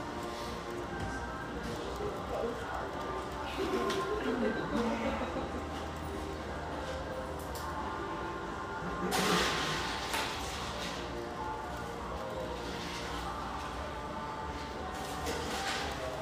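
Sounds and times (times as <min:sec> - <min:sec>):
mellow radio playing in a coffeehouse: 0:00.0 - 0:16.2
laughter: 0:03.4 - 0:06.0, 0:08.7 - 0:09.8.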